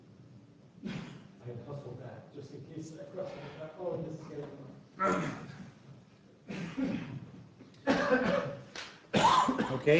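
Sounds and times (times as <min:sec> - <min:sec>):
people clearing their throats in a meeting audience: 0:00.8 - 0:01.3, 0:05.0 - 0:05.7, 0:06.5 - 0:09.8
people coughing in a meeting audience: 0:00.8 - 0:01.3, 0:05.0 - 0:05.7, 0:06.4 - 0:09.9
speech: 0:01.5 - 0:05.7.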